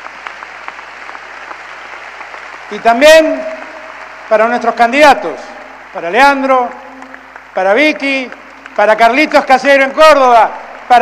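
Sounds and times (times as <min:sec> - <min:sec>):
crowd applause at a political rally honoring attending governors: 0:00.0 - 0:11.0
speech: 0:02.7 - 0:03.5, 0:04.3 - 0:06.8, 0:07.6 - 0:11.0.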